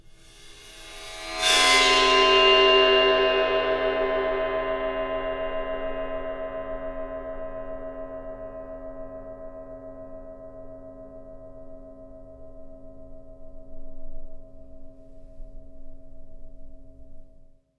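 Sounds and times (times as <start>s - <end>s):
void percussion: 0.0s - 17.6s.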